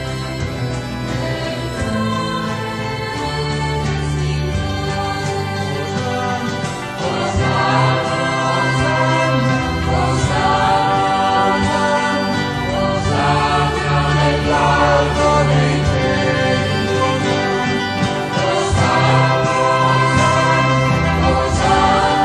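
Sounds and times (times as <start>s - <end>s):
four-voice sacred choir singing: 0.0s - 22.2s.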